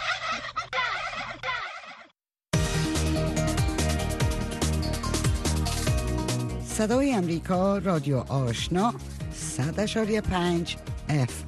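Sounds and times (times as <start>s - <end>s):
turkey gobbling: 0.0s - 2.1s
dense music: 2.6s - 11.4s
speech: 6.8s - 11.4s.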